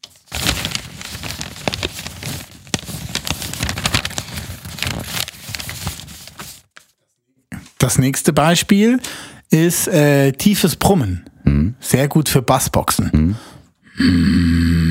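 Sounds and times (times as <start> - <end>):
paper rustling and crinkling: 0.0 - 7.0
speech: 7.8 - 14.6.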